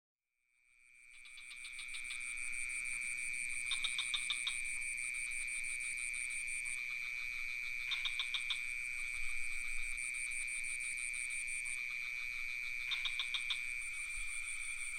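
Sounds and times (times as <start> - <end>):
crickets trilling: 1.0 - 14.9
frog-like clicking calls: 1.1 - 2.5, 3.5 - 4.8, 6.0 - 9.3, 10.3 - 14.9.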